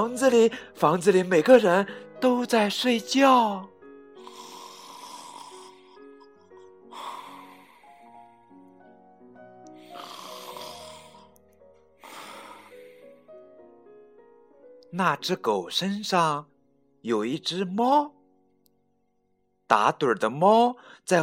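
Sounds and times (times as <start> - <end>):
speech: 0.0 - 3.7, 14.9 - 18.2, 19.7 - 21.2
old woman snoring loudly: 4.2 - 8.6, 9.8 - 11.4, 12.0 - 13.2.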